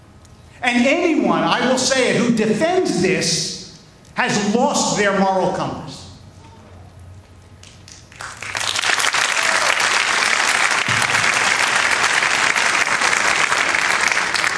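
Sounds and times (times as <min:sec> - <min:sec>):
speech: 0:00.6 - 0:03.5, 0:04.2 - 0:06.0
applause from a large audience: 0:08.1 - 0:14.5.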